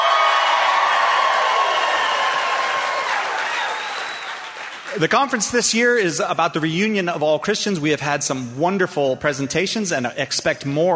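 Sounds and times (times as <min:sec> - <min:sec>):
audience cheering: 0:00.0 - 0:05.5
speech: 0:05.0 - 0:10.9.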